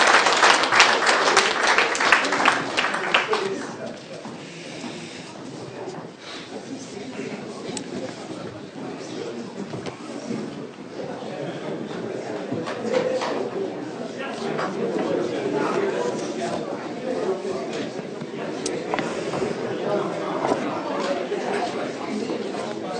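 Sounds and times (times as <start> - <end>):
applause for newly sworn-in duo committee members: 0.0 - 4.1
crowd murmur: 0.0 - 22.9.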